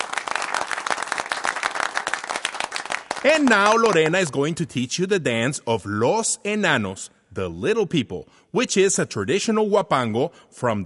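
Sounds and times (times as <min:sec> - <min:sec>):
audience applause: 0:00.0 - 0:04.3
speech: 0:03.2 - 0:10.8.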